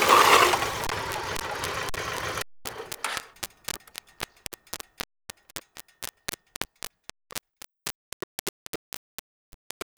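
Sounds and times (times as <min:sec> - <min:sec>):
Yamaha XV 1600 Wildstar motorcycle: 0:00.0 - 0:04.4.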